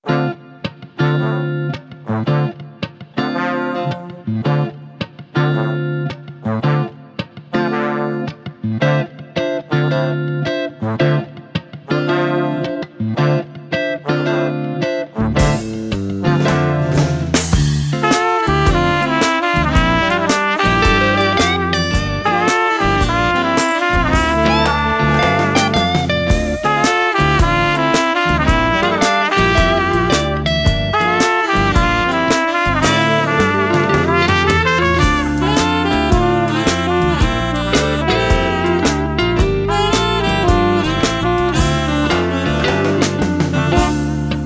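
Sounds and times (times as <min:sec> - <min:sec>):
saxophone: 0:00.0 - 0:44.4.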